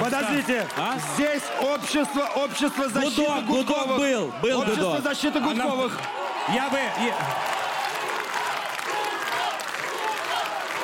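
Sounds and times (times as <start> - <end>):
dense steady applause: 0.0 - 3.9, 5.8 - 10.8
speech: 0.0 - 7.6
audience chanting a name together: 7.6 - 10.8.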